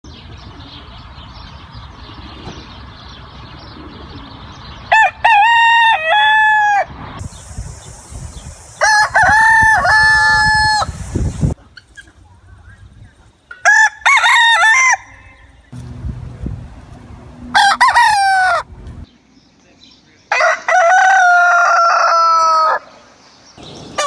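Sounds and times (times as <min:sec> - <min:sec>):
male domestic chicken Gallus gallus domesticus crowing: 0:04.9 - 0:06.9, 0:08.8 - 0:11.0, 0:13.6 - 0:15.5, 0:17.4 - 0:18.7, 0:20.3 - 0:23.0.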